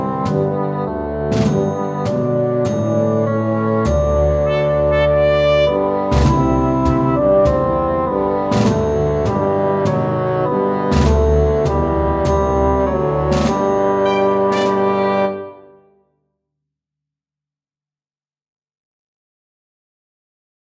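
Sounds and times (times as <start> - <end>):
mini bassoon track with melody: 0.0 - 16.0.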